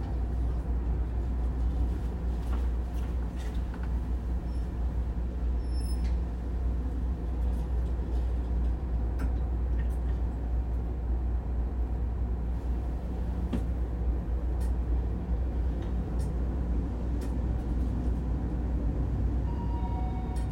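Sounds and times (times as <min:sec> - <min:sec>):
Taipei metro train rumbling from Taipei Main Station: 0:00.0 - 0:20.5
soft tone: 0:19.4 - 0:20.5.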